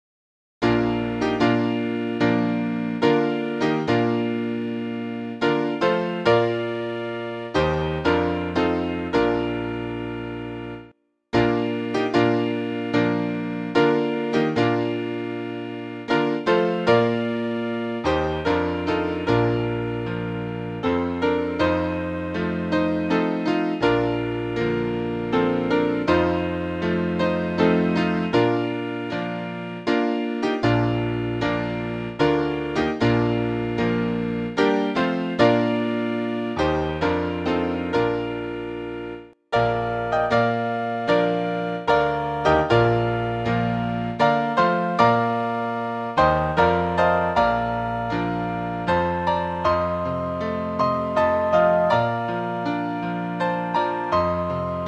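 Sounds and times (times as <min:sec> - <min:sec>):
instrumental hymn: 0:00.6 - 0:54.8.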